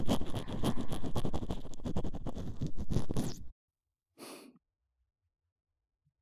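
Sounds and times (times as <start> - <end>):
brushing of the right ear ASMR: 0.0 - 3.5.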